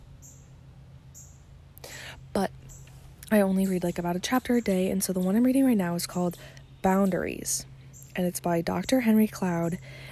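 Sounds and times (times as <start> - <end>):
birds chirping loudly outside: 0.1 - 10.1
speech: 3.3 - 10.1.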